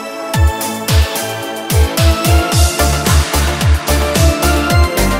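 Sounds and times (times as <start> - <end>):
80s-style new Italo disco music: 0.4 - 5.1.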